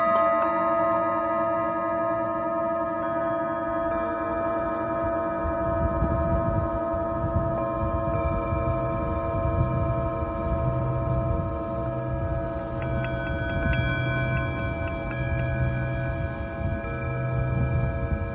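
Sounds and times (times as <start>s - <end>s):
Tibetan singing bowl ringing: 0.0s - 18.3s
low pulsing rumble: 5.6s - 18.3s.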